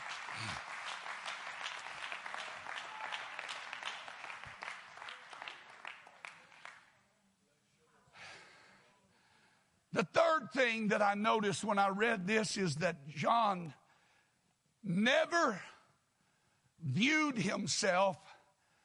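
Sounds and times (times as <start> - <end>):
church audience rhythmic clapping: 0.0 - 7.0
speech: 10.0 - 13.8, 14.8 - 15.7, 16.8 - 18.3.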